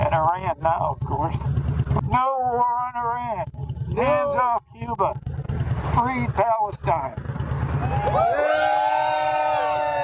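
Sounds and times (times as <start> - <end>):
speech: 0.2 - 5.4, 6.0 - 8.7
rally crowd cheering: 7.7 - 10.0.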